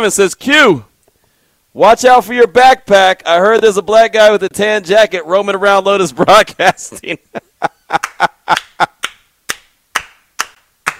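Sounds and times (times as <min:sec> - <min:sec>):
speech: 0:00.0 - 0:00.9, 0:01.8 - 0:08.9
laughter: 0:06.1 - 0:09.0
hand clapping: 0:08.0 - 0:10.9.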